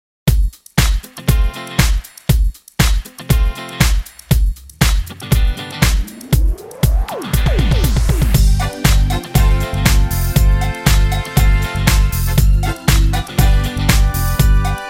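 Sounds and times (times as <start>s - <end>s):
electronic music: 0.3s - 14.8s.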